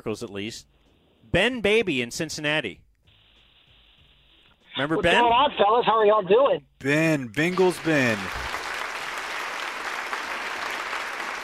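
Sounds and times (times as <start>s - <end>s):
speech: 0.0s - 2.8s, 4.8s - 8.5s
applause: 7.4s - 11.4s.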